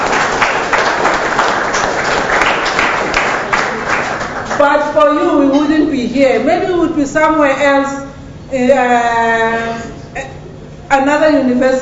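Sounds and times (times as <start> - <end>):
audience clapping: 0.0 - 4.8
speech: 4.6 - 9.9, 10.9 - 11.8.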